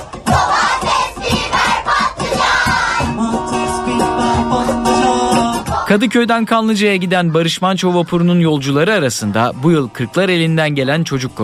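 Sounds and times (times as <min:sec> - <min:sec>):
crowd of fans singing songs together: 0:00.0 - 0:08.7
speech: 0:05.9 - 0:11.4.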